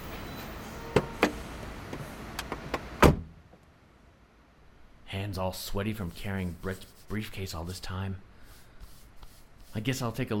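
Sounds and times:
car door opening and closing: 0.9 - 3.4
speech: 5.2 - 8.3, 9.7 - 10.3.

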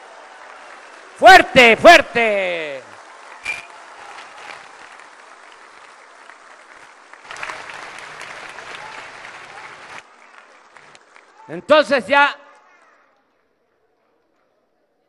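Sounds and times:
crowd clapping: 0.0 - 14.5
speech: 1.2 - 2.8, 11.5 - 12.4.

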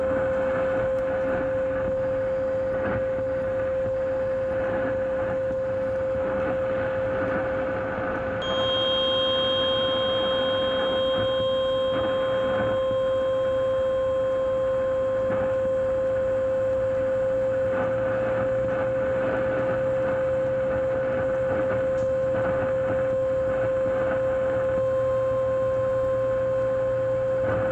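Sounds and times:
dense crackling radio static: 0.0 - 27.7
low droning rumble: 0.0 - 27.7
radio frequency interference whine on 1620 AM: 0.0 - 27.7
thin high tones: 8.4 - 15.8.

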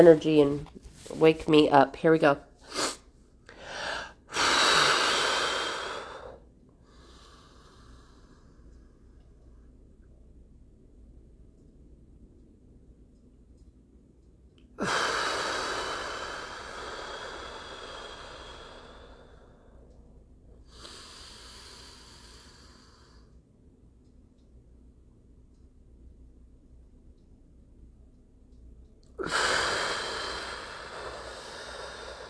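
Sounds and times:
speech: 0.0 - 3.0
person doing 4-7-8 breathing exercise: 2.6 - 9.1, 14.8 - 20.0, 20.6 - 23.4, 29.2 - 32.2.

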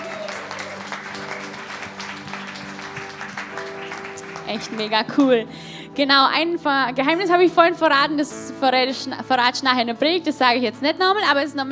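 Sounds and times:
audience clapping: 0.0 - 5.4
speech: 4.5 - 11.7.

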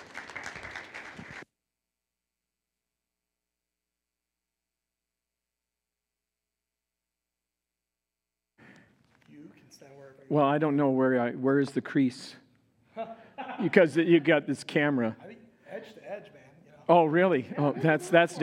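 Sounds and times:
audience applause: 0.0 - 1.4
speech: 9.7 - 12.4, 13.0 - 18.4
laughter: 12.9 - 15.0, 17.0 - 18.4.

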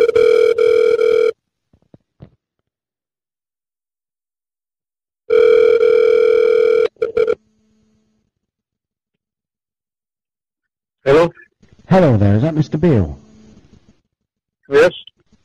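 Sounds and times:
telephone ringback tone: 0.0 - 1.4, 5.3 - 7.4
speech: 12.0 - 13.2, 14.7 - 15.0.

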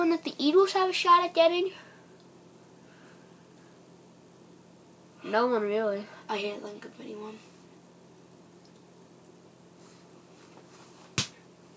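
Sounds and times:
speech: 0.0 - 1.9, 5.2 - 7.5
air conditioning making a really weird noise: 0.0 - 11.7.

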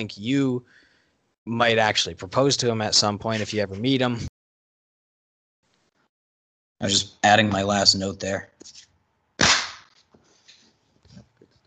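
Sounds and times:
speech: 0.0 - 0.8, 1.4 - 4.3, 6.8 - 8.8
hand clap: 9.4 - 9.9.

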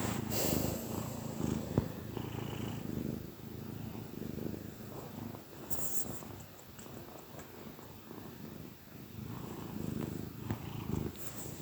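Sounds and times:
cat hiss-like burst: 0.0 - 1.8
cat purring: 0.0 - 11.5.

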